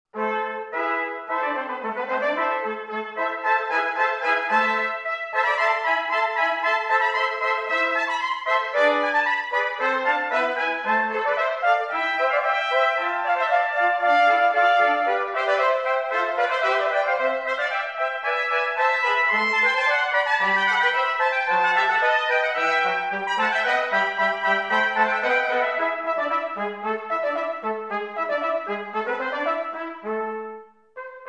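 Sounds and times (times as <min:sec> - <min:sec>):
concerto for five flutes: 0:00.2 - 0:31.2.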